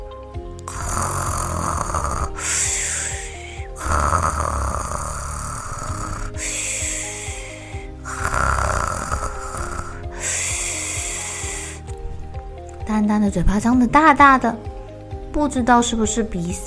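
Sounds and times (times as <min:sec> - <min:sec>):
snoring: 0:00.6 - 0:12.0
speech: 0:13.0 - 0:14.7, 0:15.4 - 0:16.6.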